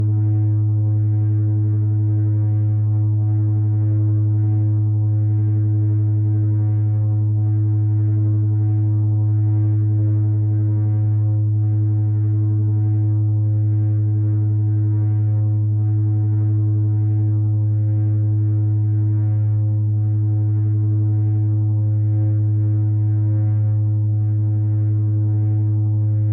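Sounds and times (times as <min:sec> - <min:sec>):
no-input feedback loop, medium low, soft, slightly fuzzy, slightly pulsating: 0:00.0 - 0:26.3.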